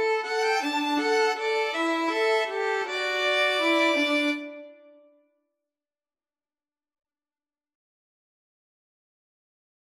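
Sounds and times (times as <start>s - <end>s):
violin duet: 0.0s - 5.0s.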